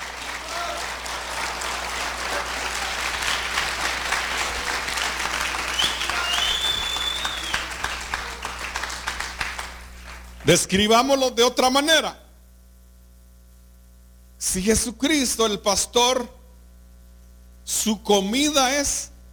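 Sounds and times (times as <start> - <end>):
audience applause: 0.0 - 10.4
speech: 10.5 - 12.2, 14.5 - 16.4, 17.7 - 19.1.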